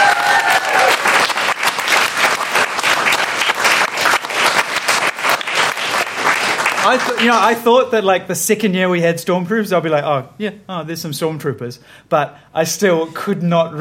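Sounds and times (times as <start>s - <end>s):
audience applause: 0.0s - 7.6s
speech: 6.9s - 13.7s.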